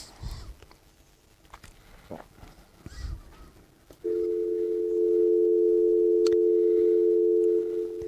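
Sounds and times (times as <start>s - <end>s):
telephone dial tone while placing a call: 4.1s - 8.0s.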